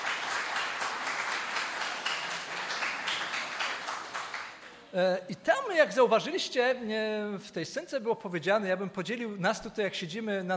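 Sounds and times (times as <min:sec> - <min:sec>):
audience applause: 0:00.0 - 0:04.7
speech: 0:04.9 - 0:10.5.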